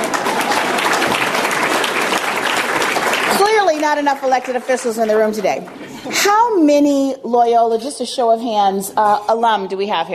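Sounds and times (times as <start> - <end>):
audience applause: 0.0 - 5.9
speech: 3.8 - 10.1.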